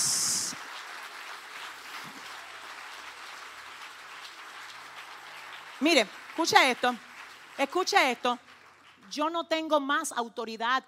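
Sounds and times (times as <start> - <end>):
audience applause: 0.0 - 9.1
speech: 5.8 - 8.4, 9.1 - 10.8.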